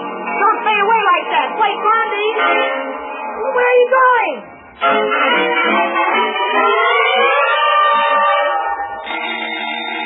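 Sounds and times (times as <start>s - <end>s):
speech: 1.4s - 6.9s
electric doorbell ringing: 6.5s - 10.0s.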